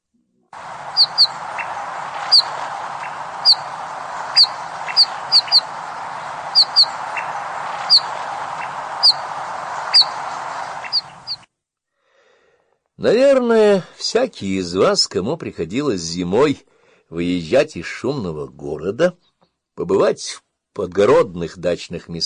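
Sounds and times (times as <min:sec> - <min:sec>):
hiss: 0:00.5 - 0:15.0
Eurasian bullfinch piping calls: 0:00.6 - 0:11.4
speech: 0:13.0 - 0:19.2, 0:19.8 - 0:22.2.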